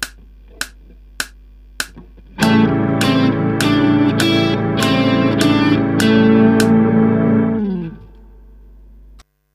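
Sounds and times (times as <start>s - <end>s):
blues etude: 2.3s - 8.3s.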